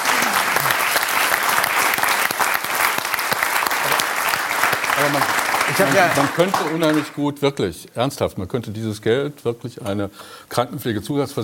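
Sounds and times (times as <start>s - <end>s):
audience applause: 0.0s - 7.2s
speech: 5.0s - 11.4s.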